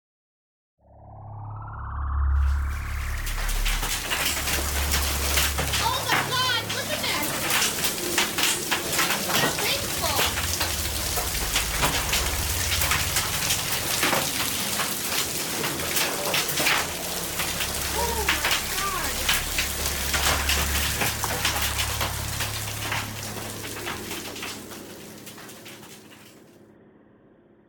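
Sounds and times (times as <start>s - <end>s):
hail falling on ground in a hailstorm: 2.5s - 26.4s.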